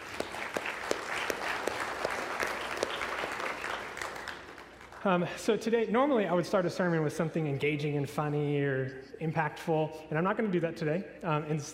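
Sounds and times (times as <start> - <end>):
audience applause: 0.0 - 5.0
speech: 5.0 - 11.7.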